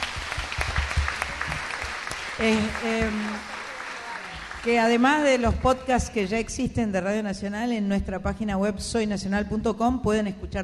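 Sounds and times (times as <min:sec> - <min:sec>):
audience applause: 0:00.0 - 0:05.0
speech: 0:02.4 - 0:03.5, 0:04.6 - 0:10.6.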